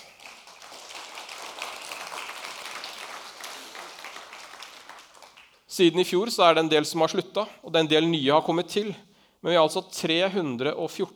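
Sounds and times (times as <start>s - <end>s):
church audience applause: 0.0s - 5.6s
speech: 5.8s - 11.1s.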